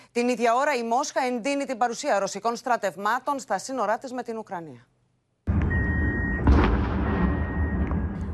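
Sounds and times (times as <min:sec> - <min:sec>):
speech: 0:00.2 - 0:04.9
explosions from drone attack on city centre of Kyiv: 0:05.5 - 0:08.3.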